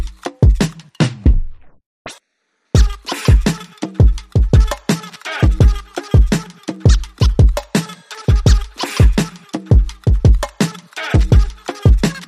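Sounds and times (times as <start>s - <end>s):
drums: 0.0s - 1.6s, 2.8s - 12.2s
vocals: 2.8s - 12.2s.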